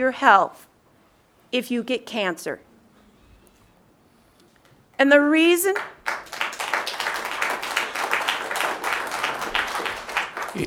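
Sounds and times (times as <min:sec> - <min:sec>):
speech: 0:00.0 - 0:00.7, 0:01.5 - 0:02.7, 0:05.0 - 0:06.0
audience applause at a public meeting on coal companies and health: 0:05.8 - 0:10.6.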